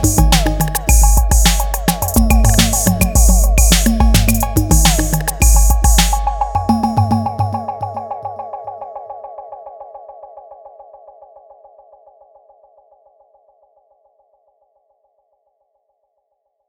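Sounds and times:
808 drum beat: 0:00.0 - 0:08.0.

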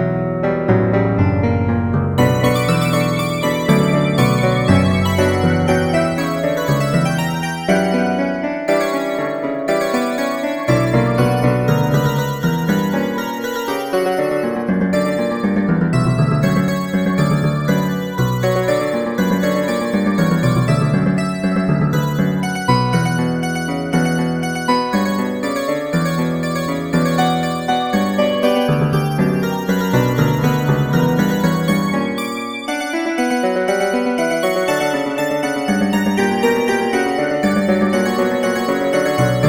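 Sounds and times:
emotive fugue: 0:00.1 - 0:39.4.

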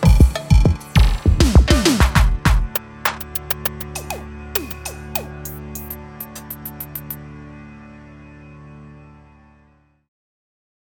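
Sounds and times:
drum machine: 0:00.0 - 0:07.2.

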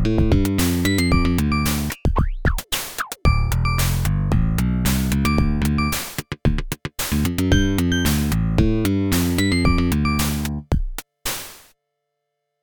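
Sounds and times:
funk music on OPL3 FM synthesis chip: 0:00.0 - 0:02.6, 0:03.2 - 0:10.7.

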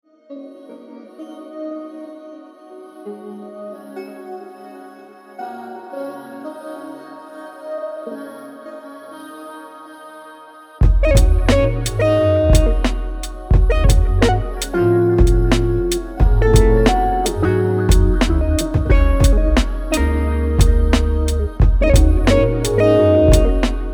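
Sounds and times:
jazz music: 0:10.9 - 0:23.9.

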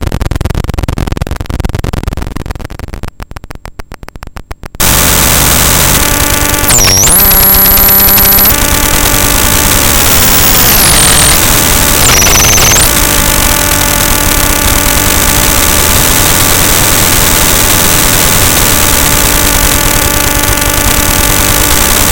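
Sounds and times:
circuit bent handheld game console noise: 0:00.5 - 0:22.1.

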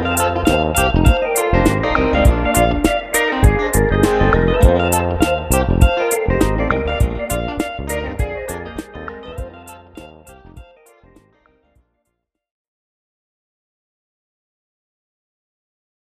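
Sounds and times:
fretless bass funk: 0:00.0 - 0:10.6.

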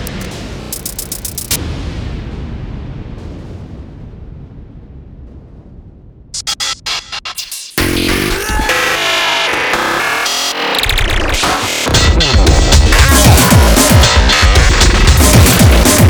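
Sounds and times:
electronic music at 230 bpm: 0:00.0 - 0:01.6, 0:06.4 - 0:16.0.

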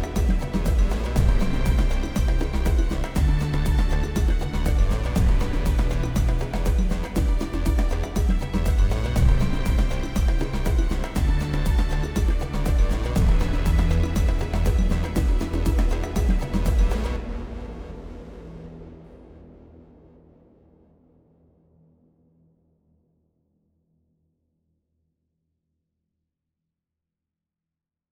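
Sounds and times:
drum song: 0:00.0 - 0:17.2.

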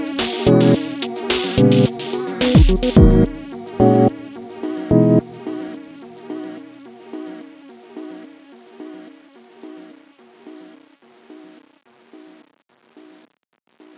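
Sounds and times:
song with delay effect: 0:00.0 - 0:07.4.

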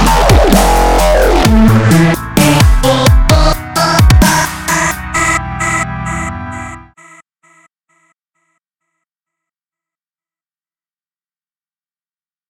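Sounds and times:
dubstep music: 0:00.0 - 0:07.0.

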